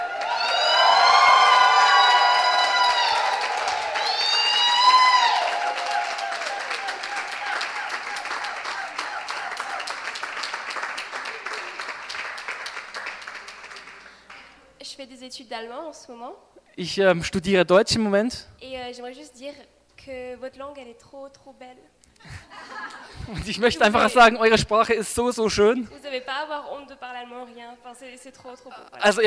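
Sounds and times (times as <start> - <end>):
crowd victory shout with cheers and whoops: 0.0 - 11.9
applause: 0.0 - 14.6
laughter: 11.0 - 12.1, 22.2 - 24.5
speech: 15.6 - 29.2.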